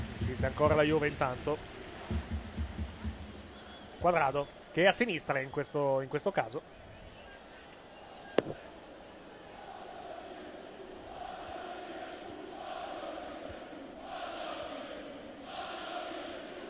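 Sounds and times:
speech: 0.3s - 2.4s, 4.0s - 6.8s
football fans chanting in a stadium: 1.5s - 4.0s, 7.8s - 16.6s
sharp knock: 8.4s - 8.6s.

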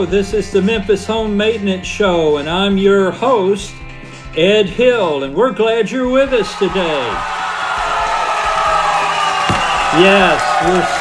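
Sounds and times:
speech: 0.0s - 3.8s, 4.4s - 7.4s, 10.0s - 10.9s
crowd cheering: 6.6s - 10.9s
dull low thumps: 9.5s - 10.1s.

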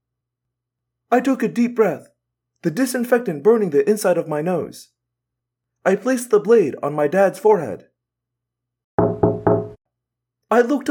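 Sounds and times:
speech: 1.1s - 4.9s, 5.8s - 7.9s, 10.5s - 10.8s
taps on observation room glass: 9.0s - 9.8s.

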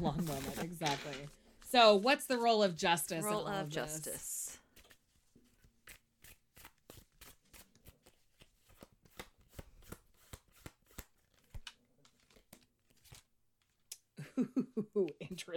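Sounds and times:
tarot cards shuffling: 0.0s - 1.7s, 4.7s - 13.9s
speech: 0.0s - 4.3s, 14.4s - 15.5s
tarot cards drawn and handled from a deck: 6.6s - 13.2s.

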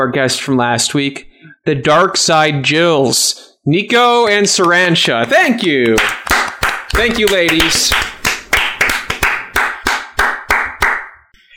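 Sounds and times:
speech: 0.0s - 6.3s, 6.9s - 8.2s
hands clapping: 4.2s - 11.3s.

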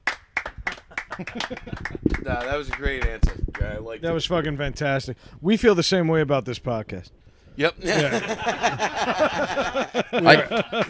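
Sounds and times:
crowd slow clap: 0.0s - 3.8s, 10.6s - 10.8s
laughter: 0.9s - 2.6s, 7.8s - 10.8s
speech: 1.2s - 10.8s.

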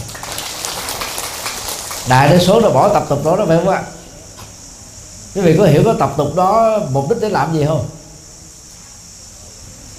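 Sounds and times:
crowd applause: 0.0s - 2.6s
speech: 2.0s - 4.0s, 5.3s - 8.0s.

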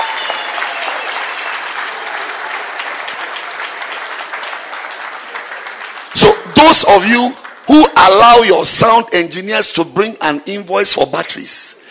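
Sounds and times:
church congregation clapping: 0.0s - 9.0s
speech: 6.6s - 11.8s.

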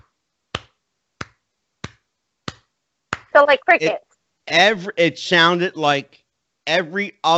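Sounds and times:
imitated leg slaps: 0.5s - 3.3s
speech: 3.4s - 7.3s
laughter: 4.5s - 6.0s, 6.7s - 7.3s.

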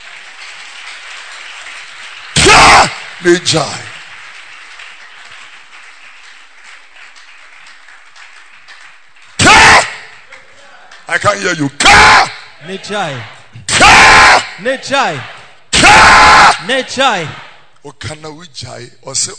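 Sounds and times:
clapping: 0.0s - 11.3s
speech: 3.2s - 3.8s, 11.2s - 15.3s, 16.0s - 19.3s.

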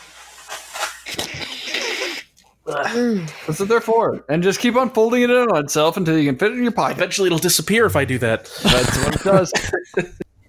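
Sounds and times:
blowing nose into a handkerchief: 0.0s - 2.3s
speech: 2.7s - 10.2s
laughter: 8.5s - 10.2s.

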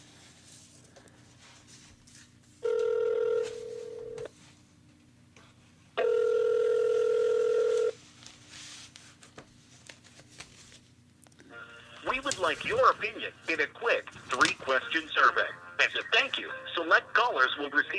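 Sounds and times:
ringback tone on a call to the Avalon Hill toll-free number: 2.6s - 4.3s, 6.0s - 8.0s
speech: 12.5s - 17.9s.

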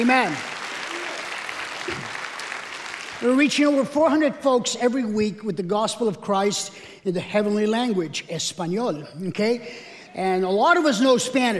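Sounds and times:
speech: 0.0s - 0.5s, 1.8s - 2.2s, 3.2s - 11.5s
audience applause: 0.0s - 3.4s.

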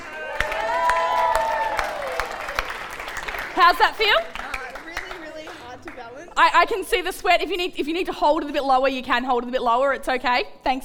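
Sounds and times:
audience clapping: 0.0s - 6.4s
speech: 3.6s - 4.4s, 6.4s - 10.8s.

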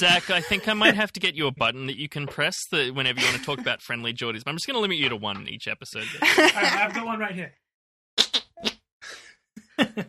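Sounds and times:
laughter: 0.0s - 1.1s, 3.0s - 3.8s, 6.0s - 7.2s
speech: 0.0s - 7.6s, 9.8s - 10.0s
armpit fart: 8.2s - 8.8s.

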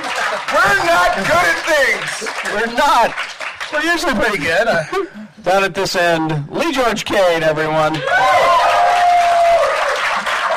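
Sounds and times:
audience applause: 0.0s - 4.6s, 8.0s - 10.5s
speech: 0.8s - 8.7s.

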